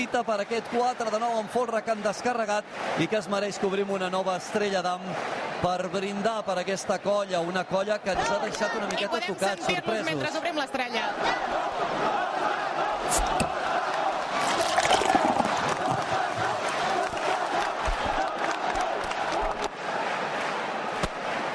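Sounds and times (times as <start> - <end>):
speech: 0.0 - 12.3
crowd of young people cheering and shouting in town square: 0.0 - 21.5.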